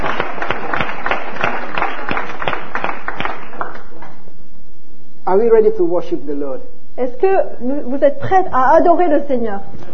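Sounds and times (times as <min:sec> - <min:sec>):
audience clapping: 0:00.0 - 0:04.2
speech: 0:05.4 - 0:09.9.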